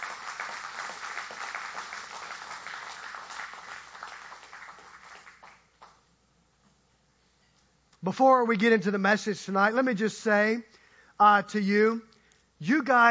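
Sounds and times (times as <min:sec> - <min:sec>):
audience applause: 0:00.0 - 0:06.0
speech: 0:08.0 - 0:13.0.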